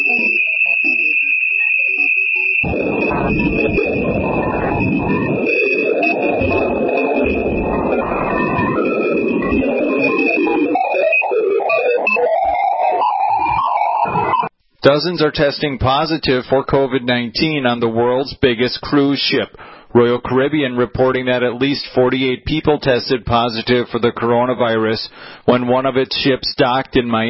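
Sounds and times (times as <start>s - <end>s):
space audio track of Jupiter's moon Ganymede by NASA's Jet Propulsion Laboratory: 0.0s - 14.5s
speech: 14.8s - 27.2s.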